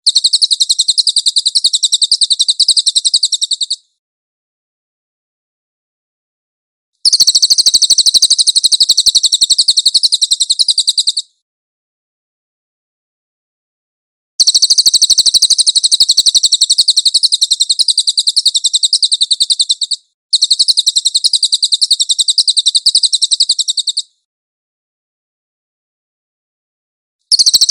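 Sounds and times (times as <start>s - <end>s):
cililin chattering trills: 0.1s - 3.8s, 7.0s - 11.2s, 14.4s - 24.1s, 27.3s - 27.6s.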